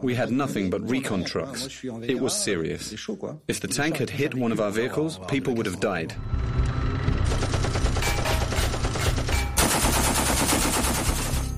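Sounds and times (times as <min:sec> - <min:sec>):
speech: 0:00.0 - 0:06.7
machine gun fire: 0:07.2 - 0:11.5.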